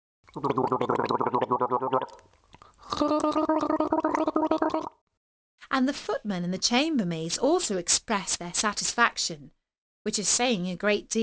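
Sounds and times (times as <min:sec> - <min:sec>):
person gargling water in the mouth: 0:00.3 - 0:02.2, 0:02.8 - 0:05.0
speech: 0:00.4 - 0:01.8, 0:05.8 - 0:11.2.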